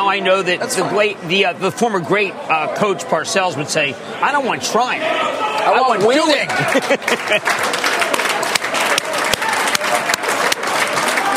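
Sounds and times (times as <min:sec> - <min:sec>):
speech: 0:00.1 - 0:08.1
applause: 0:05.9 - 0:11.3
laughter: 0:06.2 - 0:08.0.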